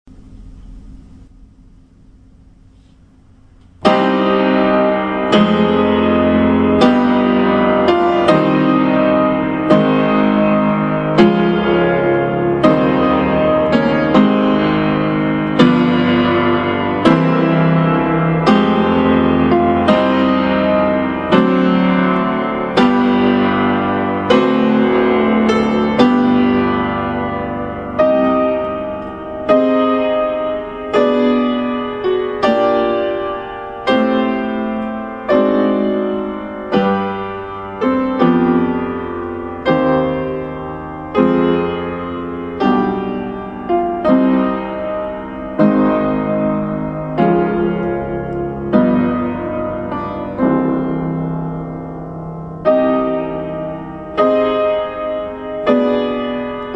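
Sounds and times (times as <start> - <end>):
prelude in C minor: 0.1 - 56.7.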